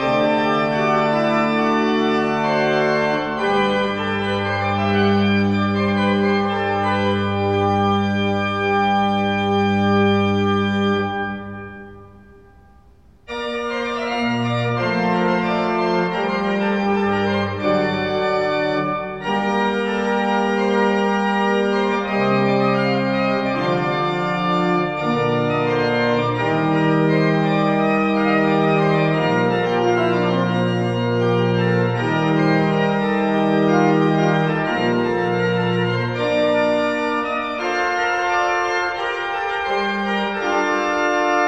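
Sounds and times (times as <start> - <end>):
municipal evening bells ringing: 0.0 - 41.4.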